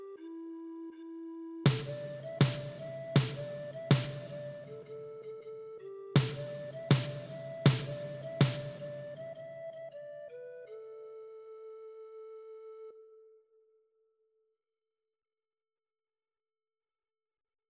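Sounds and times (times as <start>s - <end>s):
percussion: 1.7s - 4.9s, 6.2s - 9.2s.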